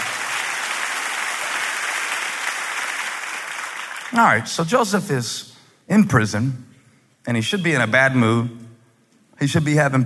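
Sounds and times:
audience applause: 0.0s - 4.2s
speech: 4.1s - 8.6s, 9.4s - 10.0s.

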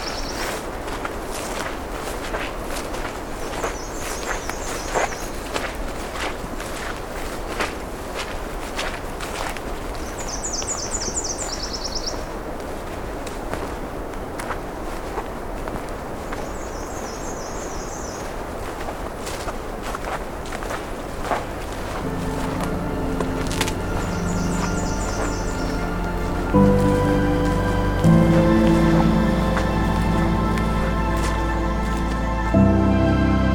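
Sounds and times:
bird chirping: 0.0s - 0.6s, 3.6s - 5.6s, 10.0s - 12.4s, 16.3s - 18.4s, 21.8s - 32.5s
footsteps crunching along a road allowance at the edge of park land: 0.0s - 33.4s
vehicle engine hum: 21.8s - 33.1s.

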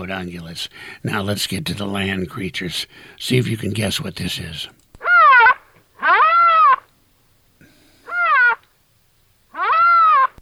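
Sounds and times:
speech: 0.0s - 4.8s
rhinoceros making squeaky calls: 5.0s - 6.9s, 8.0s - 8.7s, 9.5s - 10.4s.

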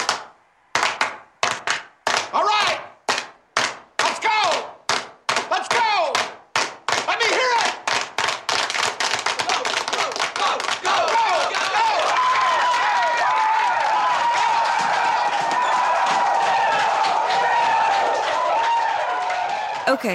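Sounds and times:
crowd slow clap: 0.0s - 2.3s, 3.1s - 5.5s, 6.5s - 20.0s.

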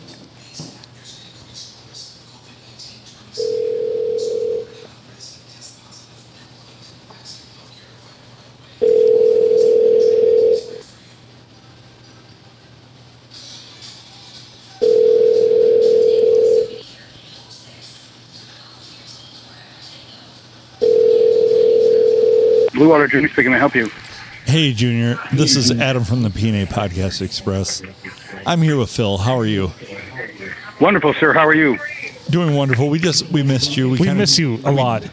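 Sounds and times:
faint hum: 0.0s - 35.1s
telephone line tone: 3.4s - 4.8s, 8.8s - 10.8s, 14.8s - 16.8s, 20.8s - 23.0s
speech: 22.9s - 29.8s, 30.8s - 35.1s.

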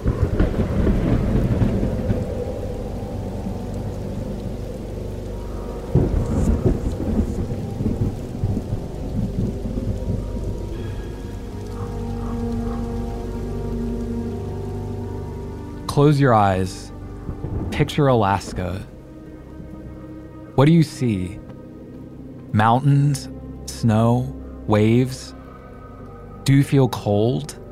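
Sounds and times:
sharp thunder crack: 0.0s - 3.6s, 5.9s - 11.3s
low rumbling thunder: 0.0s - 15.8s, 17.0s - 20.2s
heavy rain hissing in a thunderstorm: 0.0s - 27.6s
speech: 16.0s - 16.9s, 17.8s - 18.9s, 20.6s - 21.4s, 22.5s - 25.4s, 26.4s - 27.6s.

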